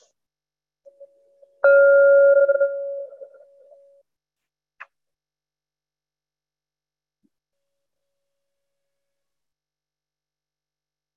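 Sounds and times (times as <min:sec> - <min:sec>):
meditation bell tone: 0:00.9 - 0:04.0.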